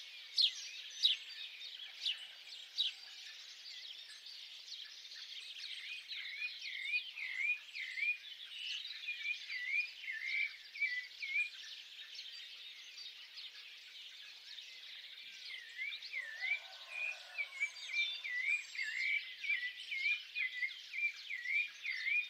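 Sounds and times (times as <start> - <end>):
birds singing together in a soft chorus: 4.9 - 22.2.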